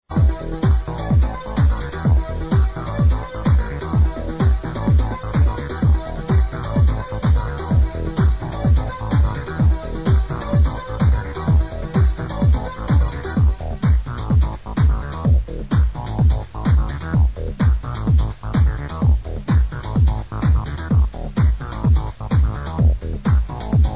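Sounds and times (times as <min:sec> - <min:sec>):
space tune: 0:00.1 - 0:23.9.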